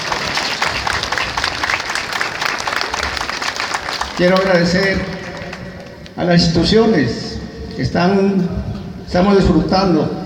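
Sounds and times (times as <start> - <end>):
audience applause: 0.0 - 6.2
speech: 4.2 - 5.2, 6.2 - 7.2, 7.8 - 10.2.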